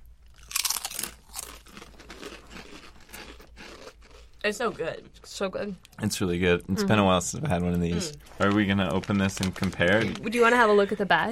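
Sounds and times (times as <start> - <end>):
crunching all-dressed potato chips: 0.2 - 4.5, 8.0 - 10.5
speech: 4.4 - 11.3.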